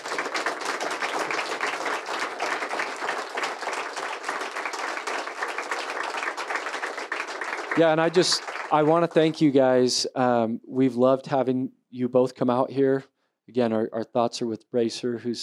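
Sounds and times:
crowd applause: 0.0s - 9.4s
speech: 7.8s - 15.4s.

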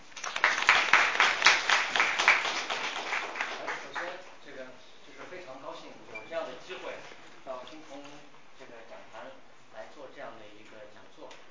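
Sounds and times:
audience applause: 0.1s - 4.2s.

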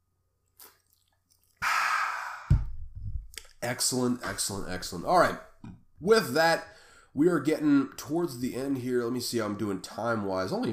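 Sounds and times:
person sipping ice-cold Coke: 0.6s - 2.6s
speech: 3.6s - 10.7s.

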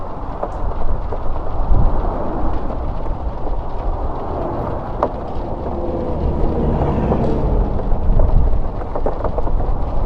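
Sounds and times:
rain hissing at a pit stop: 1.0s - 10.0s
cars passing: 1.4s - 10.0s.

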